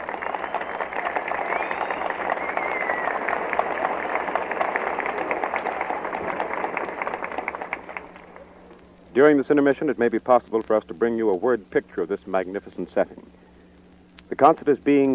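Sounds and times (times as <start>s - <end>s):
applause of a large outdoor audience: 0.0s - 9.0s
speech: 9.2s - 13.3s, 14.4s - 15.1s.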